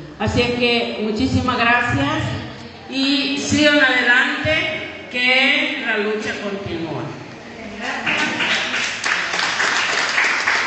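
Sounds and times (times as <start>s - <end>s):
speech: 0.2s - 7.2s
audience applause: 8.1s - 10.6s.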